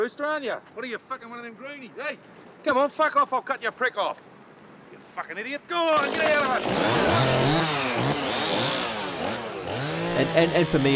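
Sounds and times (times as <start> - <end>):
speech: 0.0 - 4.3, 4.9 - 8.1, 10.2 - 10.9
chainsaw cutting down a tree: 5.9 - 10.9.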